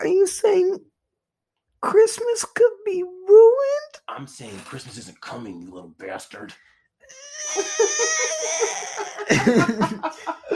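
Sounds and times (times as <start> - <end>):
speech: 1.8 - 10.5
person imitating a small child crying: 7.1 - 9.6
laughter: 7.5 - 10.5.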